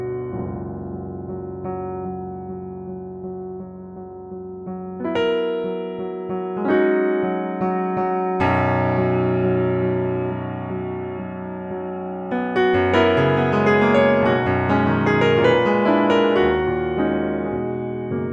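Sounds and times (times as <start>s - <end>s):
improvised music: 4.7s - 18.3s.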